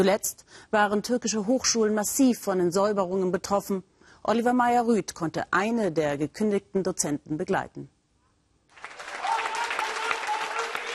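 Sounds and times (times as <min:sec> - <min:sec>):
speech: 0:00.0 - 0:08.0
audience applause for a lecturer: 0:08.7 - 0:10.9.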